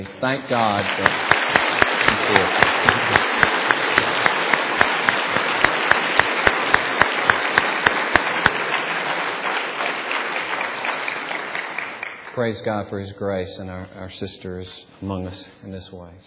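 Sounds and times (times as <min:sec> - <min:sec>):
audience applause: 0:00.0 - 0:12.4
speech: 0:00.2 - 0:01.4, 0:02.1 - 0:03.3, 0:12.4 - 0:16.2.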